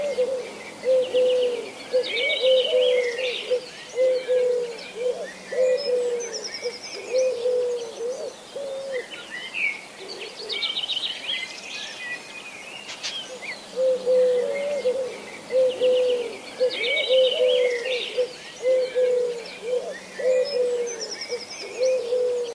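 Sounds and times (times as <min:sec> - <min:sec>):
Eurasian collared dove cooing: 0:00.0 - 0:09.3, 0:10.0 - 0:10.8, 0:13.3 - 0:22.5
songbirds chirping: 0:00.0 - 0:22.5.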